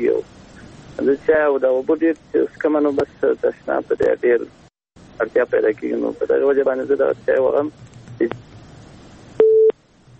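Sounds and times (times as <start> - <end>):
speech: 1.3 - 4.6, 5.2 - 8.4
short beep of a phone line tone: 9.4 - 9.8.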